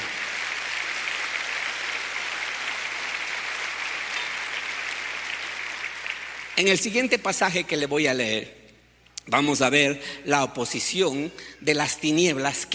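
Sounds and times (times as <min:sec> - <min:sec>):
audience applause: 0:00.0 - 0:06.6
speech: 0:06.6 - 0:08.6, 0:09.3 - 0:12.7.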